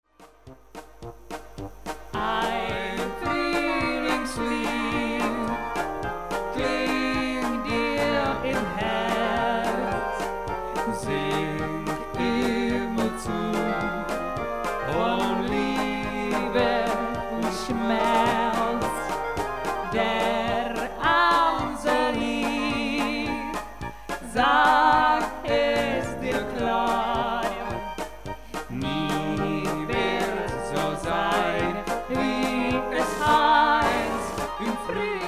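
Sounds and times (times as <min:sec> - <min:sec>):
polka music: 0:00.0 - 0:35.2.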